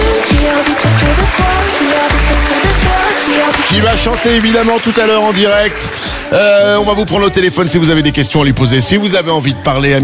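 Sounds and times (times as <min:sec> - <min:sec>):
loud dense applause from a crowd: 0:00.0 - 0:06.6
upbeat music bed with punchy bass notes: 0:00.0 - 0:10.0
speech: 0:03.8 - 0:10.0.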